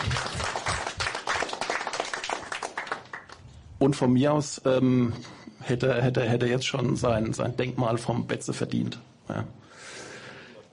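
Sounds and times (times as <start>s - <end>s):
audience clapping: 0.0s - 3.4s
speech: 3.8s - 9.9s.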